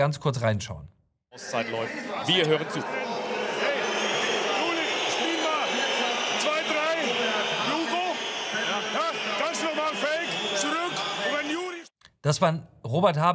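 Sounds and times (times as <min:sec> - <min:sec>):
speech: 0:00.0 - 0:03.0, 0:12.2 - 0:13.3
crowd whistling in protest at handball match: 0:01.4 - 0:11.9.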